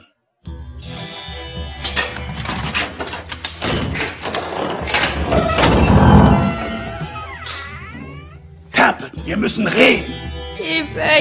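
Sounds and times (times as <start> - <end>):
bedroom door opening: 1.8 - 8.4
speech: 9.3 - 11.2.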